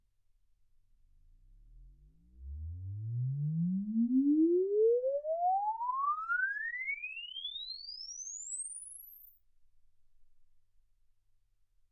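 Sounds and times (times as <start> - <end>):
exponential sine sweep from 10 Hz to 24 kHz: 2.4 - 9.6.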